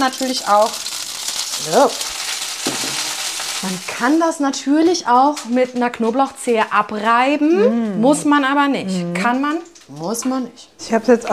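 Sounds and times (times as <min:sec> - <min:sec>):
speech: 0:00.0 - 0:01.0, 0:01.6 - 0:02.8, 0:03.6 - 0:11.3
ciabatta toasting cut side down in olive oil in a pan on the stove: 0:00.0 - 0:05.5.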